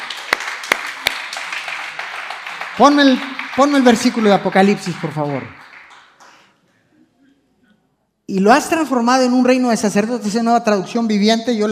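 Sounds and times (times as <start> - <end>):
audience applause: 0.0 - 6.5
speech: 2.8 - 5.6, 8.3 - 11.6.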